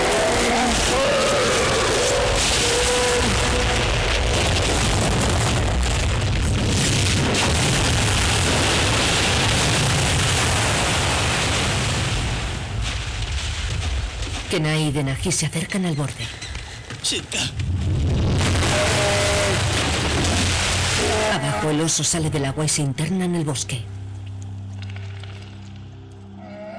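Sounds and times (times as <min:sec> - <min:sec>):
great mass of ice collapsing: 0:00.0 - 0:14.5, 0:17.6 - 0:21.6
speech: 0:14.6 - 0:16.4, 0:17.1 - 0:17.8, 0:21.3 - 0:24.0.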